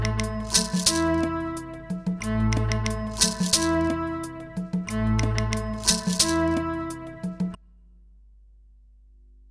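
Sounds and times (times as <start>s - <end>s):
backing track: 0.0s - 7.6s.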